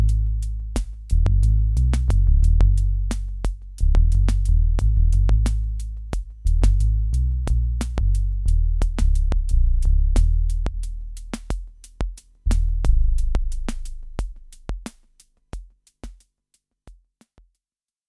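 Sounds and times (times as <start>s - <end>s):
analogue synthesizer sawtooth bass: 0.0s - 11.0s, 12.5s - 14.5s.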